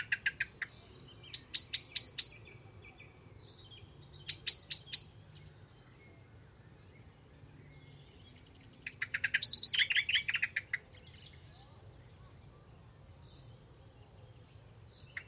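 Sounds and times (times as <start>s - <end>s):
bird high sharp ticking chirps: 0.0s - 2.4s, 4.2s - 5.2s, 8.9s - 10.9s.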